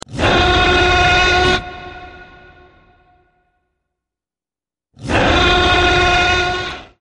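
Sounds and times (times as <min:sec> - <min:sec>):
irritated Rajasaurus: 0:00.0 - 0:03.3, 0:05.0 - 0:07.0.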